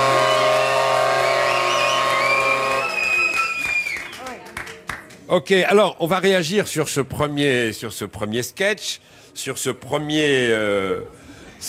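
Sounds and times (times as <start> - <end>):
cheering voices: 0.0 - 4.0
audience applause: 0.0 - 5.2
speech: 5.3 - 11.6.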